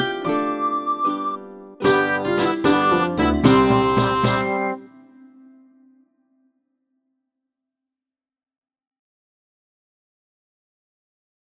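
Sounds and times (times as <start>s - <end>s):
old-style instrumental music: 0.0s - 6.2s.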